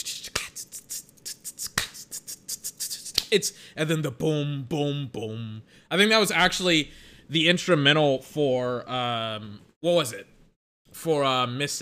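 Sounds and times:
finger snaps imitating trap beat claps: 0.3 - 0.6, 1.6 - 2.2, 3.1 - 3.4
speech: 3.3 - 10.4, 11.0 - 11.8.

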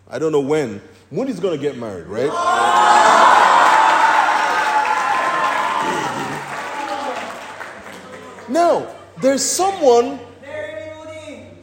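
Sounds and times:
speech: 0.1 - 3.2, 8.5 - 10.3
audience applause at a youth camp: 2.6 - 8.6.

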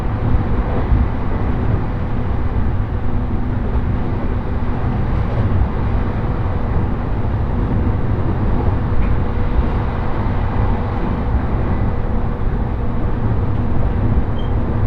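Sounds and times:
train interior rumble on the Tohoku Main Line between Kuroiso and Shin-Shirakawa: 0.0 - 14.8.

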